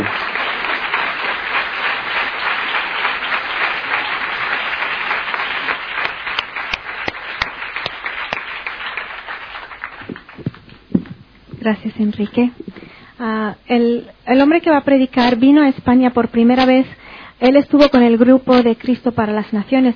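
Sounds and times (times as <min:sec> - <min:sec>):
crowd applause: 0:00.0 - 0:11.2
speech: 0:11.7 - 0:12.6, 0:13.2 - 0:19.9.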